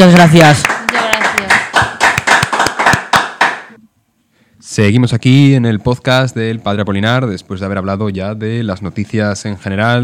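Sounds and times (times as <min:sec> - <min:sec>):
speech: 0:00.0 - 0:00.8, 0:04.8 - 0:10.0
studio audience applauding: 0:00.0 - 0:03.8.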